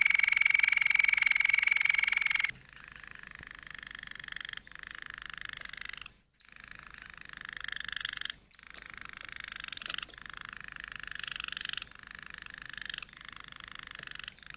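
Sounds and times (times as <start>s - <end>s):
Waterslager canary song: 0.0s - 2.5s.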